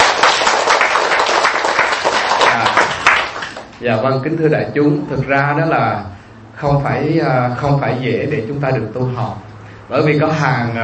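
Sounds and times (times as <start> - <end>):
audience applause: 0.0 - 3.7
speech: 3.8 - 10.8.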